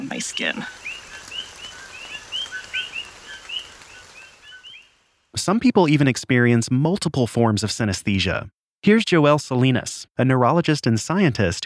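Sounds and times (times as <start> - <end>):
coquí frogs chirping in chorus in Puerto Rico: 0.0 - 5.2
speech: 0.1 - 0.8, 5.4 - 11.6.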